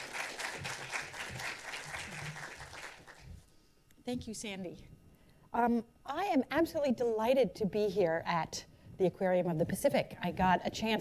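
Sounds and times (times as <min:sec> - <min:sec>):
audience applause welcoming an author at the Aquarium of the Pacific: 0:00.0 - 0:03.2
speech: 0:04.1 - 0:04.9, 0:05.5 - 0:10.9.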